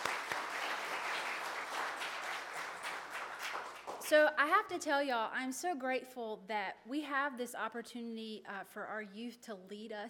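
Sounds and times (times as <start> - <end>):
crowd applauding: 0.0 - 4.1
speech: 4.1 - 10.0.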